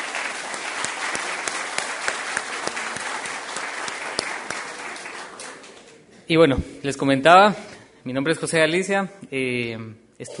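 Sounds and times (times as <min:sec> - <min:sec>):
audience applause: 0:00.0 - 0:05.9
speech: 0:06.3 - 0:10.3.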